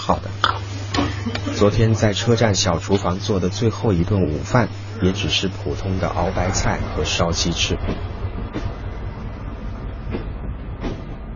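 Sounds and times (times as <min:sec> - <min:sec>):
speech: 0:00.1 - 0:00.3, 0:01.6 - 0:08.1
train S232 stopping at Qinghuayuan station: 0:05.7 - 0:11.3.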